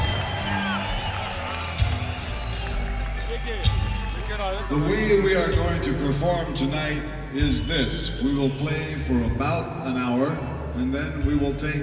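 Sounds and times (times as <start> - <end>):
audience applause: 0.0 - 4.8
crowd noise with scattered voices: 0.0 - 11.8
speech: 4.4 - 11.8.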